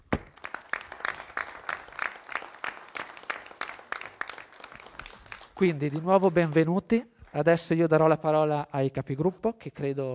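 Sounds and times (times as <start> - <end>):
audience applause: 0.2 - 6.8
speech: 5.6 - 10.1.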